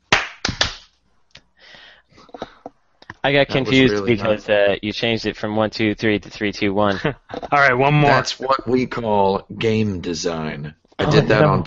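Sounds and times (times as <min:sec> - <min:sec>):
group clapping: 0:00.0 - 0:01.0
speech: 0:03.2 - 0:11.6.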